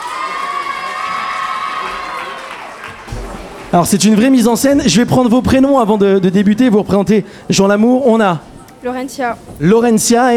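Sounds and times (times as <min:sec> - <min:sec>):
pupils applauding and cheering: 0:00.0 - 0:04.3
speech: 0:03.7 - 0:10.3.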